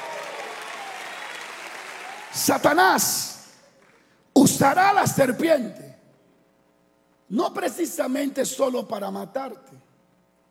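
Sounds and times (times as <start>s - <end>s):
congregation applause at a religious service: 0.0s - 4.2s
speech: 2.3s - 3.4s, 4.5s - 5.8s, 7.3s - 9.9s.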